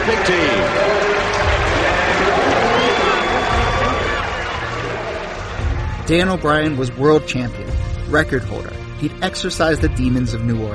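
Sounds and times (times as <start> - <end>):
large stadium crowd cheering: 0.0 - 6.9
speech: 0.3 - 0.6, 6.1 - 10.7
high whistles: 2.6 - 4.5.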